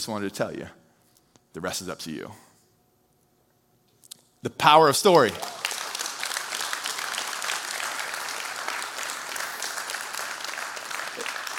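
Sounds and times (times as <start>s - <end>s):
speech: 0.0s - 0.8s, 1.5s - 2.5s, 4.4s - 5.6s
audience clapping: 5.1s - 11.5s.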